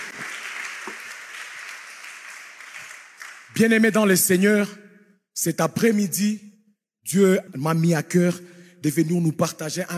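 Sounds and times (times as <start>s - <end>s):
church congregation clapping after a scripture reading: 0.0s - 4.6s
speech: 3.6s - 4.8s, 5.4s - 9.9s.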